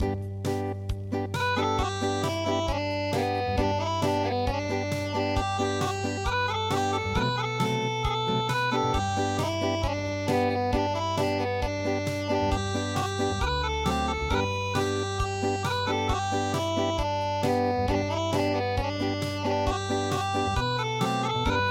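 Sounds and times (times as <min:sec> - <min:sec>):
unplugged midi music: 0:00.0 - 0:21.6.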